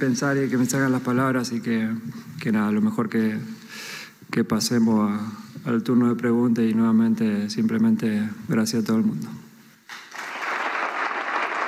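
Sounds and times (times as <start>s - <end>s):
speech: 0.0s - 9.4s
audience applause: 9.9s - 11.6s.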